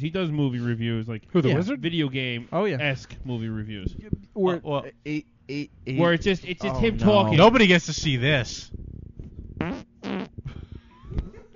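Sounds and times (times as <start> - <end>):
speech: 0.0 - 8.8, 9.6 - 9.9
fart: 9.6 - 10.6.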